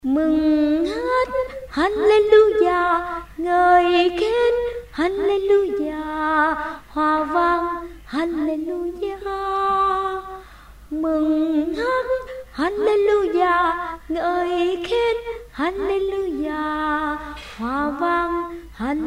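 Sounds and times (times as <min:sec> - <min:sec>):
soprano singing: 0:00.0 - 0:19.0.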